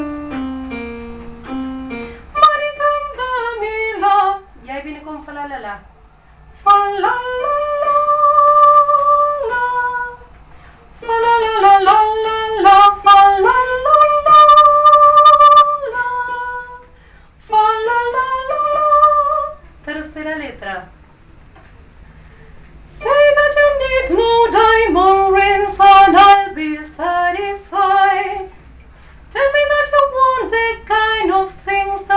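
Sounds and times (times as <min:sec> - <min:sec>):
soprano voices singing: 0:06.6 - 0:10.2, 0:11.0 - 0:16.9, 0:17.5 - 0:20.2, 0:22.9 - 0:28.5, 0:29.4 - 0:32.1.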